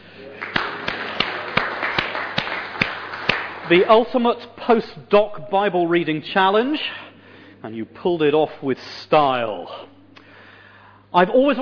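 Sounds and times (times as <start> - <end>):
audience applause: 0.2 - 4.1
louder evenly spaced claps: 0.2 - 4.2
speech: 3.7 - 7.0, 7.6 - 9.9, 11.1 - 11.6.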